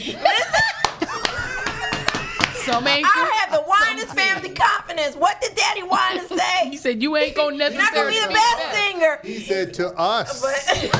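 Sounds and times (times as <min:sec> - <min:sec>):
laughter: 0:00.0 - 0:04.8, 0:05.8 - 0:09.0, 0:10.3 - 0:10.9
audience soul clap: 0:00.8 - 0:03.0
speech: 0:02.7 - 0:10.9.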